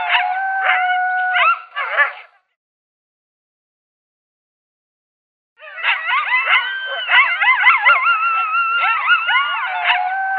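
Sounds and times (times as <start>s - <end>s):
coyote locator call of yips and howls: 0.0s - 2.3s, 5.6s - 10.3s.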